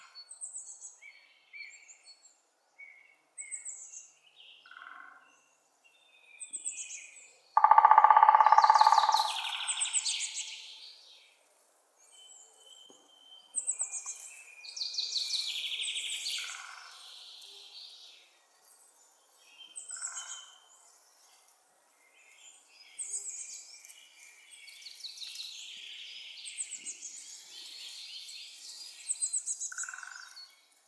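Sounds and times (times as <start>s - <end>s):
woodpeckers Picidae: 7.6s - 10.6s.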